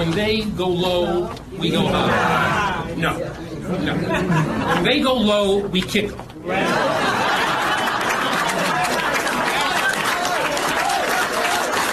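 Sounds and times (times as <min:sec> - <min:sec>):
speech: 0:00.0 - 0:07.4
large audience laughing: 0:03.6 - 0:05.0, 0:06.5 - 0:10.5
large audience applauding: 0:07.1 - 0:11.9.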